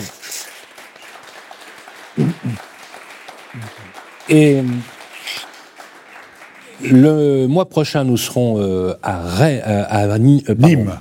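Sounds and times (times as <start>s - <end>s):
audience applause: 0.0s - 7.5s
speech: 2.2s - 2.7s, 3.6s - 5.0s, 6.8s - 11.0s.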